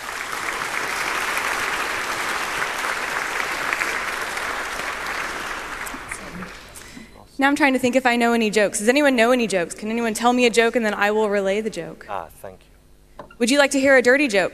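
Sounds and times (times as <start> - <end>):
audience clapping: 0.0 - 7.0
speech: 7.4 - 12.7, 13.4 - 14.5.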